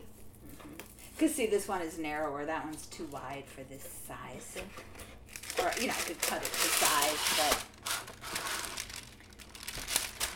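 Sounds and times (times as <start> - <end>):
speech: 1.2 - 7.7
fresh roll of gift wrapping paper crinkling and rustling: 5.3 - 10.3.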